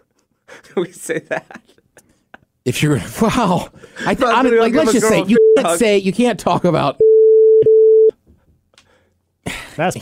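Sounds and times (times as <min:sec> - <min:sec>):
speech: 0:00.7 - 0:01.8, 0:02.6 - 0:07.0, 0:09.5 - 0:09.9
censor beep: 0:05.3 - 0:05.8, 0:07.0 - 0:08.1.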